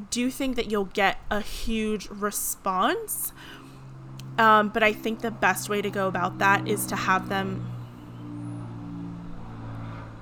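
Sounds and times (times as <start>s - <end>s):
speech: 0.1s - 3.6s, 4.4s - 7.7s
airplane flying overhead: 1.1s - 10.1s.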